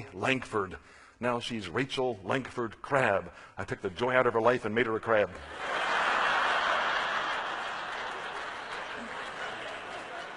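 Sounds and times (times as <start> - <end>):
speech: 0.1 - 6.0
audience laughter: 5.4 - 10.3.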